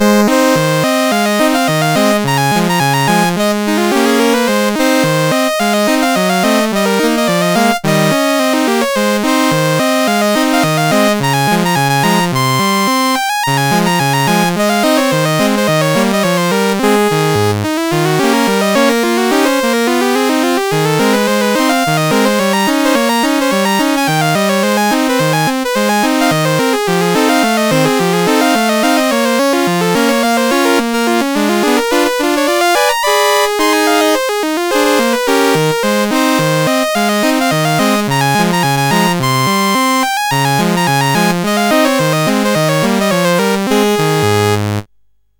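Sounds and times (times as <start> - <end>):
MOS 8580 SID chip game music: 0.0 - 44.9.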